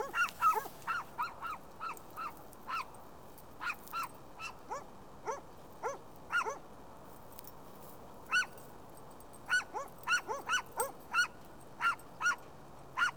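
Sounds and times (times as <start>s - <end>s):
dog barking: 0.0s - 2.3s, 4.4s - 6.6s, 9.5s - 12.4s, 13.0s - 13.1s.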